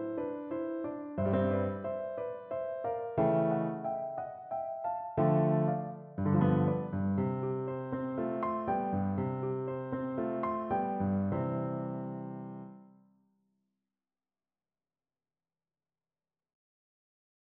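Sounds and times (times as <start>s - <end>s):
piano: 0.0s - 13.1s.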